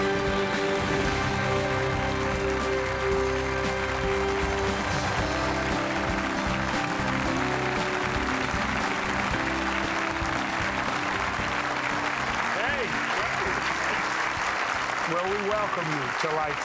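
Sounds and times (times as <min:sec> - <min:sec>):
studio audience applause: 0:00.0 - 0:16.6.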